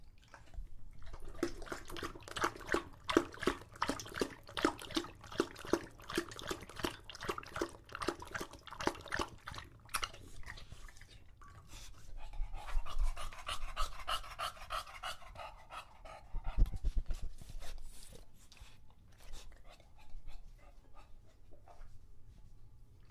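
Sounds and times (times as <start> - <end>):
English Bulldog lapping water: 0.0 - 15.4
English Bulldog breathing heavily with wet rattle: 11.6 - 21.4.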